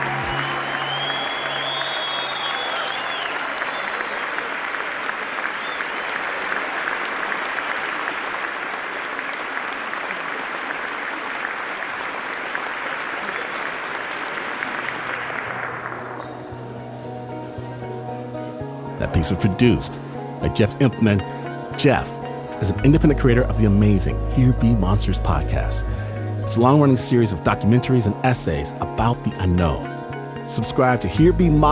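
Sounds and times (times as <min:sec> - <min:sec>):
audience applause: 0:00.0 - 0:16.8
speech: 0:19.2 - 0:29.9, 0:30.5 - 0:31.7.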